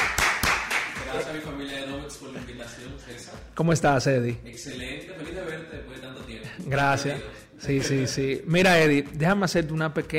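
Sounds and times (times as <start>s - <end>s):
applause: 0.0s - 1.1s
speech: 1.2s - 10.1s.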